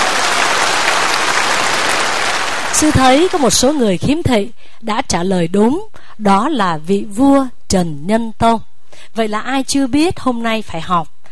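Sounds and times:
audience applause at a monk's talk: 0:00.0 - 0:03.8
speech: 0:02.8 - 0:11.2.

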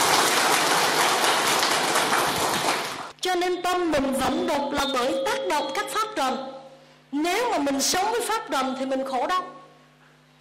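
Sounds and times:
audience applause: 0:00.0 - 0:03.1
speech: 0:03.2 - 0:09.6.

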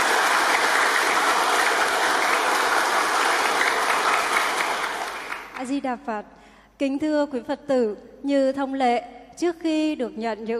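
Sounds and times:
crowd applause: 0:00.0 - 0:05.7
speech: 0:05.8 - 0:10.5.

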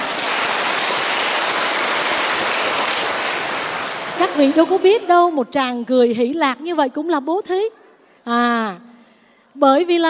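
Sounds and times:
audience applause: 0:00.0 - 0:05.1
speech: 0:04.4 - 0:08.9, 0:09.6 - 0:10.0.

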